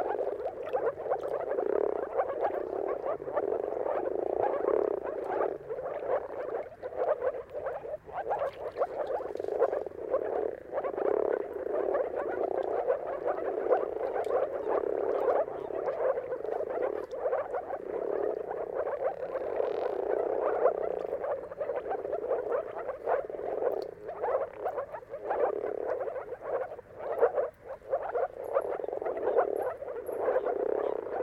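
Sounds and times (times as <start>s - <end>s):
moor frog chorus: 0.0s - 31.2s.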